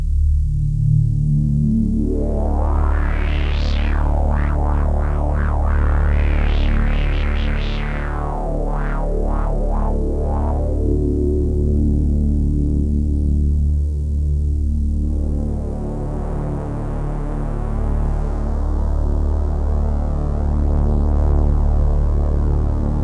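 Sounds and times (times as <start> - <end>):
Korg Z1 synth pad: 0.1 - 23.0.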